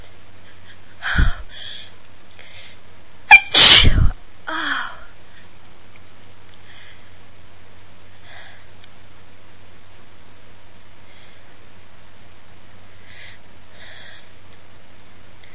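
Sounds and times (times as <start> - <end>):
woman sneezing loudly like a hurricane: 3.3 - 4.1.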